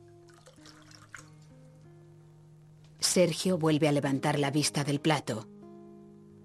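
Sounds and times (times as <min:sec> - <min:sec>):
wine poured from a bottle into a glass: 0:00.0 - 0:01.6
speech: 0:03.1 - 0:05.5.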